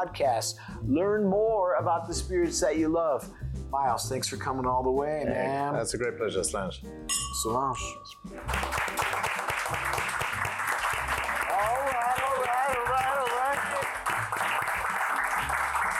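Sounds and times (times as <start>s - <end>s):
speech: 0.0s - 8.8s
crowd slow clapping: 8.4s - 15.9s.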